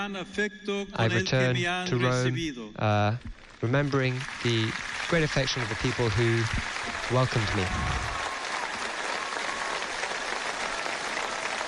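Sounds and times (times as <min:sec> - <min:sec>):
speech: 0:00.0 - 0:08.1
applause: 0:03.1 - 0:11.6.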